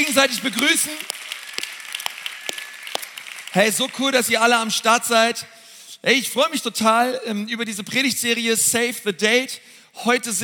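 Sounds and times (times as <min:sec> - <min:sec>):
speech: 0:00.0 - 0:01.2, 0:03.6 - 0:10.4
church audience applause: 0:00.1 - 0:04.8.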